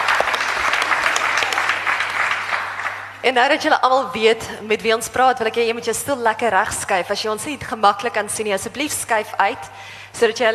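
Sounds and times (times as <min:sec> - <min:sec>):
room full of people clapping: 0:00.0 - 0:03.2
speech: 0:03.2 - 0:10.5.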